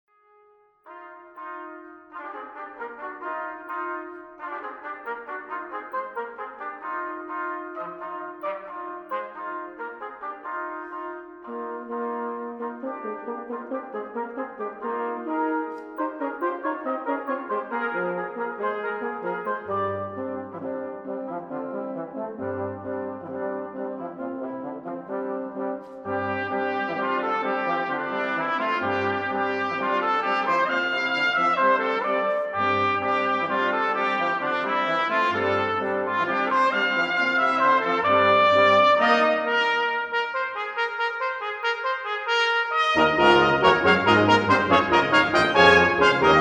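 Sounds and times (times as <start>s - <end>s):
brass quintet playing a toccata: 0.8s - 46.3s.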